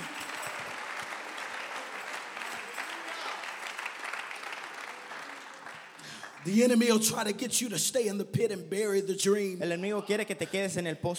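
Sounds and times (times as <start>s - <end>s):
audience clapping hands: 0.0s - 7.4s
speech: 6.4s - 11.1s.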